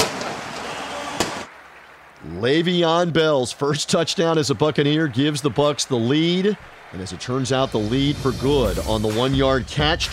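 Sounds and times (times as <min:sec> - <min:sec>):
single sharp cannon blast: 0:00.0 - 0:01.5
speech: 0:02.2 - 0:10.1.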